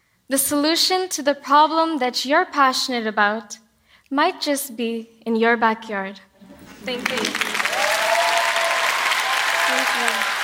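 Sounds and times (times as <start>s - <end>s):
speech: 0.3s - 7.5s, 9.8s - 10.3s
large audience applause after a speech: 6.4s - 10.4s.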